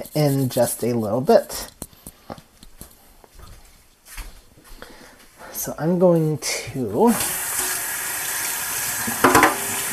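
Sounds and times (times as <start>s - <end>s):
speech: 0.0s - 1.7s, 5.6s - 7.4s
washing oil off hands under sink tap: 7.1s - 9.9s.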